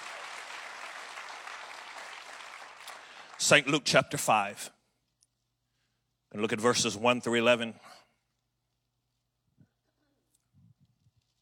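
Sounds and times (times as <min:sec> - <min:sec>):
church congregation applauding to welcome visiting members at an evening service: 0:00.0 - 0:03.9
speech: 0:03.4 - 0:04.8, 0:06.4 - 0:08.0.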